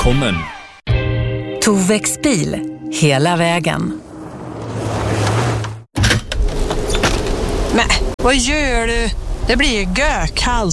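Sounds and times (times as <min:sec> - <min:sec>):
speech: 0:00.0 - 0:00.6, 0:01.6 - 0:04.0, 0:07.7 - 0:10.7
window being opened: 0:04.2 - 0:07.8.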